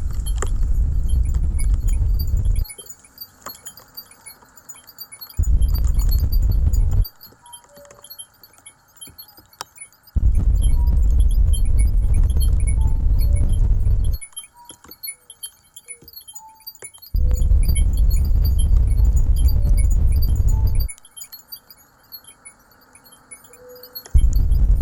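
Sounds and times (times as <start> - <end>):
shared soundscape: 0.0 - 3.0, 5.4 - 7.2, 10.2 - 14.7, 17.1 - 24.8.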